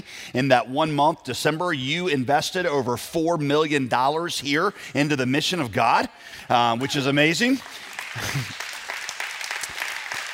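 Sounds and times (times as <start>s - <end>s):
speech: 0.0s - 8.6s
faint audience applause at a church service: 6.6s - 10.3s.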